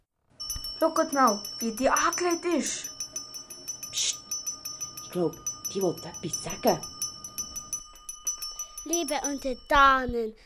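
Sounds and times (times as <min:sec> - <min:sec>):
spoon tapping against a glass: 0:00.4 - 0:10.3
speech: 0:00.8 - 0:02.9, 0:05.2 - 0:07.0, 0:08.9 - 0:10.4.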